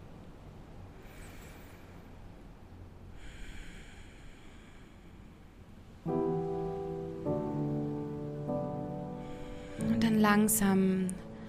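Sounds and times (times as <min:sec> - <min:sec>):
steady hiss: 0:00.0 - 0:11.4
deep full breaths during a yoga session: 0:00.9 - 0:05.9, 0:08.8 - 0:10.0, 0:11.2 - 0:11.4
speech: 0:10.2 - 0:11.2.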